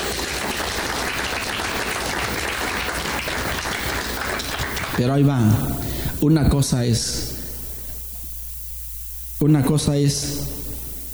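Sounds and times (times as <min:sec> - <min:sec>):
audience applauding: 0:00.0 - 0:05.0
speech: 0:05.0 - 0:07.3, 0:09.4 - 0:10.6.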